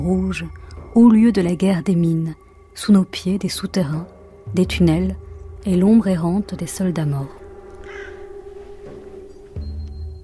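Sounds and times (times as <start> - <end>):
speech: 0.0 - 7.4
deep rumble: 0.0 - 10.2
steady low hum: 0.0 - 10.2
crow cawing over the red zone: 7.3 - 9.5.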